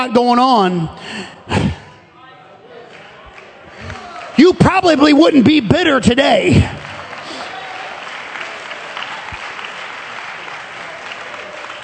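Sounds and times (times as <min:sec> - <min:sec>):
speech: 0:00.0 - 0:01.7, 0:04.4 - 0:06.8
crowd clapping hands: 0:02.9 - 0:04.8, 0:06.4 - 0:11.8.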